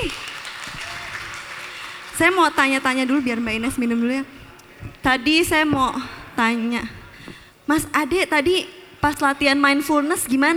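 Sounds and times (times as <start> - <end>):
audience applause: 0.0 - 3.9
speech: 2.2 - 4.4, 5.0 - 7.0, 7.7 - 10.5.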